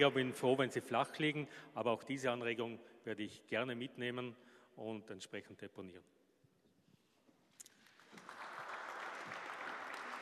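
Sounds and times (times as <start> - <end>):
speech: 0.0 - 6.2
audience applause: 7.9 - 10.1.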